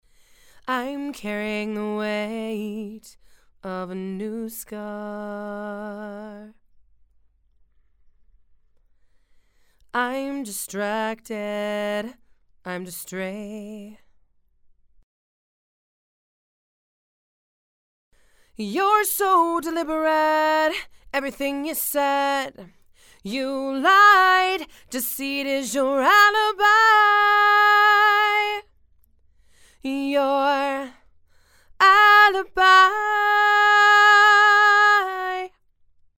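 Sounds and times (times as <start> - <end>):
female vocals: 0.6 - 6.6, 9.9 - 14.0, 18.6 - 28.7, 29.8 - 31.1, 31.7 - 35.6.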